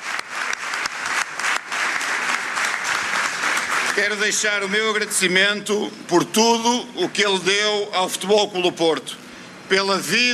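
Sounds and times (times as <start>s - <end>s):
audience applause: 0.0s - 4.7s
speech: 4.0s - 10.3s.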